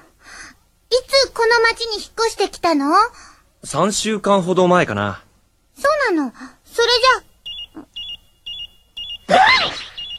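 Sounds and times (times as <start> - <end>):
speech: 2.0 - 7.2
small electronic pendant beeping: 7.4 - 10.1.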